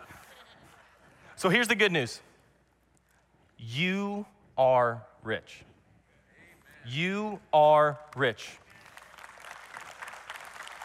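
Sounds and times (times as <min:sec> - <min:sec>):
speech: 0:01.4 - 0:02.3, 0:03.6 - 0:05.7, 0:06.8 - 0:08.6
audience clapping: 0:08.1 - 0:10.8.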